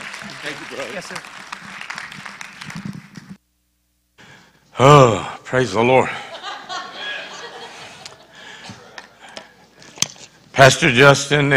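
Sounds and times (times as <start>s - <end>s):
audience applause: 0.0s - 3.4s
speech: 0.4s - 1.4s, 4.8s - 6.2s, 10.6s - 11.5s
laughter: 6.0s - 9.3s.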